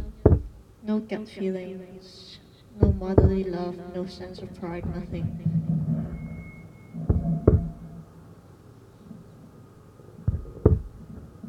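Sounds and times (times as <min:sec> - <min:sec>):
small fast heartbeat of an unborn baby: 0:00.0 - 0:00.6, 0:02.8 - 0:03.5, 0:04.8 - 0:08.0, 0:10.2 - 0:11.3
low rumbling hum: 0:00.0 - 0:00.8, 0:02.8 - 0:11.4
speech: 0:00.9 - 0:05.6.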